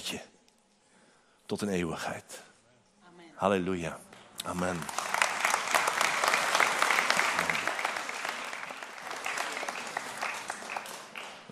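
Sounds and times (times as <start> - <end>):
speech: 0.1 - 0.3, 1.5 - 2.5, 3.4 - 5.0
applause: 4.4 - 11.4.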